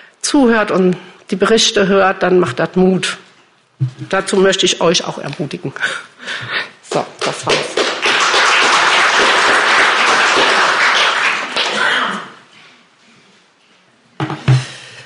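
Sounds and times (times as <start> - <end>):
speech: 0.3 - 3.2, 3.8 - 7.8
audience applause: 6.9 - 12.4.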